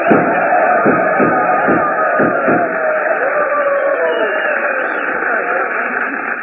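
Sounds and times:
gunshots: 0.0s - 3.4s
crowd cheering and applauding: 0.0s - 6.4s.

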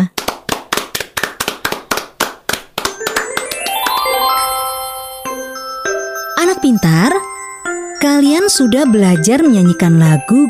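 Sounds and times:
applause, hands clapping: 0.0s - 4.9s
speech: 6.6s - 7.2s, 8.0s - 10.4s.

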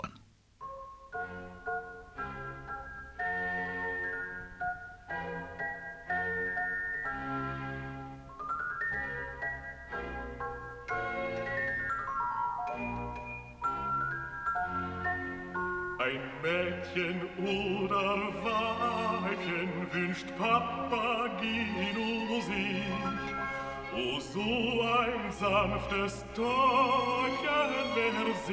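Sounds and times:
glockenspiel melody in an opera: 0.6s - 28.5s
orchestral accompaniment: 1.1s - 28.5s
speech: 16.8s - 23.4s, 24.0s - 28.5s.

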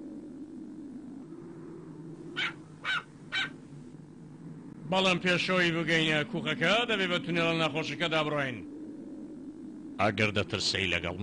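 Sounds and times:
low steady rumble: 0.0s - 11.2s
dog barking: 2.4s - 3.6s
speech: 4.9s - 8.7s, 10.0s - 11.2s.

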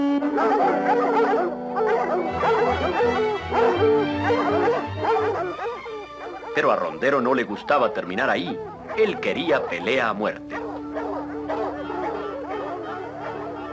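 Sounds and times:
pack of raccoon-hunting hounds baying and barking: 0.2s - 13.7s
speech: 6.6s - 10.7s.

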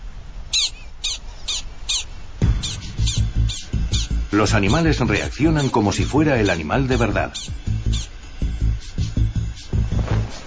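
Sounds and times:
low rumbling noise: 0.0s - 10.4s
prairie dog alarm call warning of a coyote: 0.5s - 4.4s, 5.2s - 8.2s
speech: 4.3s - 7.8s.

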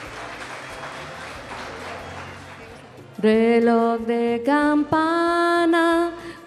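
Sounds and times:
audience applause: 0.0s - 3.1s
speech: 3.2s - 6.2s.

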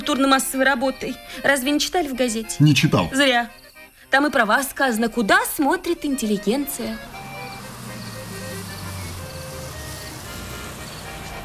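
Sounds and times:
speech: 0.0s - 7.1s
bus approaching: 4.8s - 11.4s.

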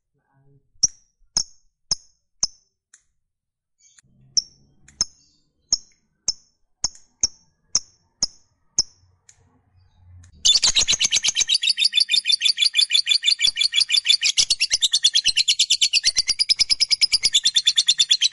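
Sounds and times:
lovebird chirps: 3.8s - 18.3s.

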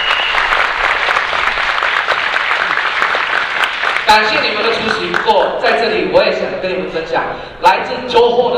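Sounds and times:
applause: 0.0s - 5.3s
speech: 4.1s - 8.5s.

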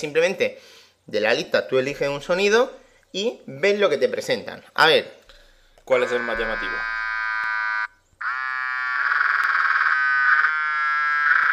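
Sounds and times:
speech: 0.0s - 5.2s, 5.9s - 7.0s
faint steady drone: 5.3s - 10.4s
mobile phone vibrating: 5.9s - 10.8s.

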